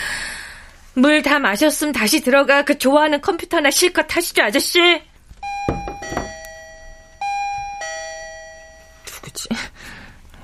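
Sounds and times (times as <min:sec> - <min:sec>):
speech: 0:01.0 - 0:05.1
thumps and rustling: 0:05.3 - 0:06.5
intercom doorbell ringing: 0:05.4 - 0:09.1.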